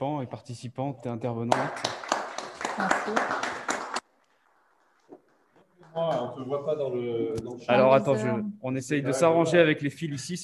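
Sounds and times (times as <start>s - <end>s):
speech: 0.0s - 2.2s, 2.8s - 3.7s, 6.0s - 10.4s
audience applause: 1.5s - 4.1s.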